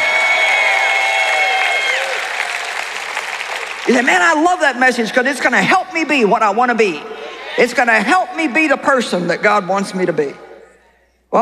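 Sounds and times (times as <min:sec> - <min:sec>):
audience clapping and cheering: 0:00.0 - 0:04.7
speech: 0:03.9 - 0:10.4.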